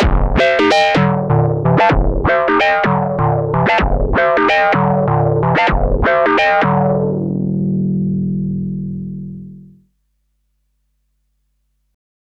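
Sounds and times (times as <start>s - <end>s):
Behringer Model D synthesizer main out fed back into EXT in overdrive: 0.0s - 9.8s.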